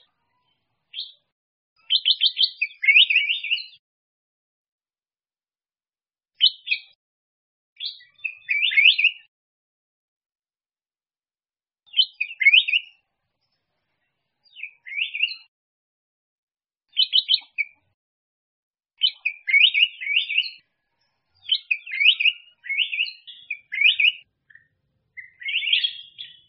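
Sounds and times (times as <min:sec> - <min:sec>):
black-crested bulbul singing: 0:01.8 - 0:03.8, 0:07.8 - 0:09.3, 0:11.9 - 0:13.0, 0:14.5 - 0:15.5, 0:16.9 - 0:17.8, 0:19.0 - 0:20.6, 0:21.4 - 0:26.4.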